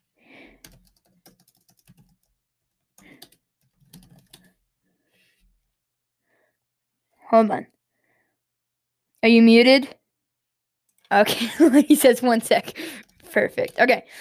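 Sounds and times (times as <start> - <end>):
typing on a computer keyboard: 0.6 - 4.6
speech: 7.3 - 7.7, 9.2 - 10.0, 11.1 - 14.1.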